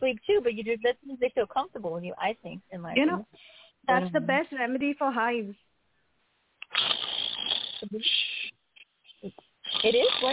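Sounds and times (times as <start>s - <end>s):
speech: 0.0s - 5.7s, 6.7s - 8.6s, 9.2s - 10.3s
person snoring: 6.7s - 8.5s, 9.6s - 10.3s.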